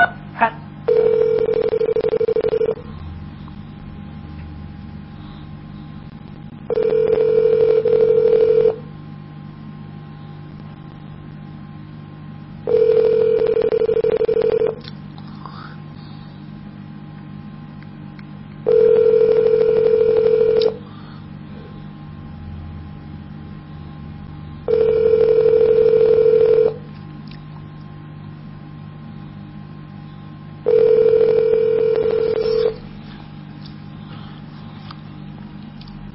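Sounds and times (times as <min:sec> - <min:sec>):
telephone ringing unanswered: 0:00.9 - 0:02.9, 0:06.7 - 0:08.8, 0:12.7 - 0:14.8, 0:18.7 - 0:20.8, 0:24.7 - 0:26.8, 0:30.7 - 0:32.8.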